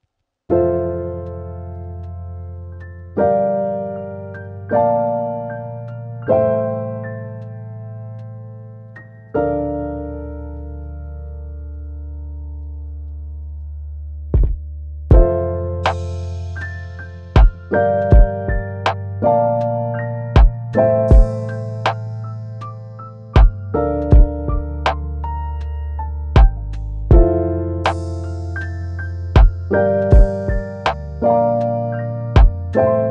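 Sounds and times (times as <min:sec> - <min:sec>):
chill relaxing piano lofi beat: 0:00.5 - 0:33.1.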